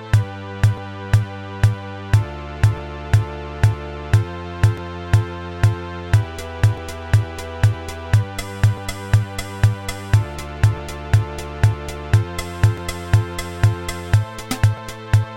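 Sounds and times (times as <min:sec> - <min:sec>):
dry keyboard preset sound: 0:00.0 - 0:15.3.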